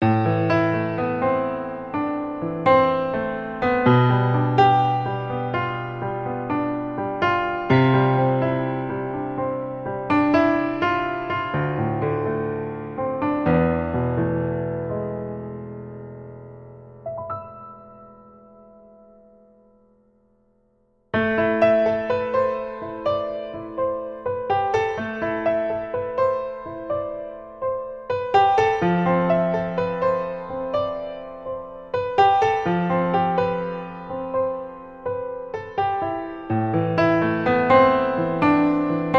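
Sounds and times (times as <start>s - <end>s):
introspective piano etude: 0.0s - 39.1s.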